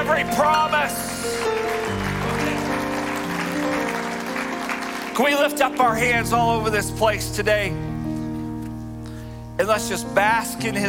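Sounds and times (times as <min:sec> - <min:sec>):
audience clapping hands: 0:00.0 - 0:06.0
held keyboard chords: 0:00.0 - 0:10.8
speech: 0:00.2 - 0:01.6, 0:05.2 - 0:07.9, 0:09.6 - 0:10.8.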